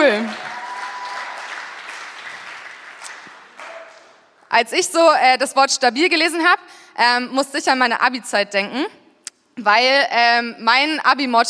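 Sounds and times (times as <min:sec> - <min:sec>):
audience applause: 0:00.0 - 0:04.2
speech: 0:04.6 - 0:09.0, 0:09.6 - 0:11.4.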